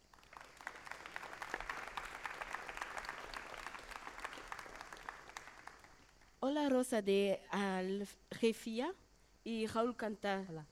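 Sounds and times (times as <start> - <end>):
audience applauding musicians: 0.0 - 6.3
speech: 6.4 - 10.7.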